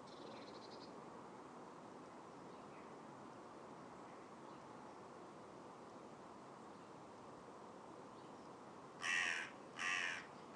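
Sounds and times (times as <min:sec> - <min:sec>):
crow cawing: 0:09.0 - 0:10.5.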